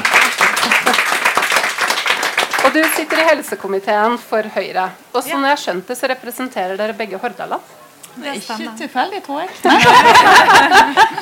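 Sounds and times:
crowd applauding panel guests: 0.0s - 3.6s
laughter: 0.2s - 1.2s, 9.5s - 11.1s
speech: 2.8s - 11.1s.

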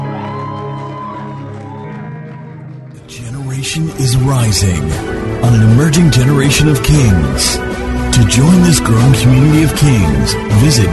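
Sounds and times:
audience shouting and clapping in celebration: 0.0s - 3.0s
speech: 3.6s - 10.9s.

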